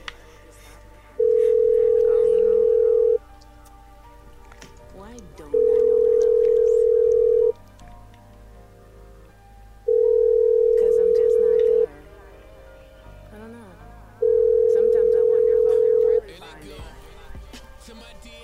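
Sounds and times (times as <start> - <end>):
telephone line ringing on another machine: 1.2 - 3.2, 5.5 - 7.6, 9.9 - 11.9, 14.2 - 16.2.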